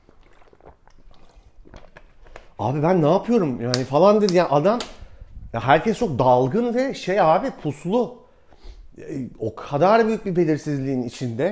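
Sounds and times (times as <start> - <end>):
person drinking water, swallowing and gulping: 0.0 - 3.8
speech: 2.6 - 4.9, 5.5 - 8.2, 9.0 - 11.5.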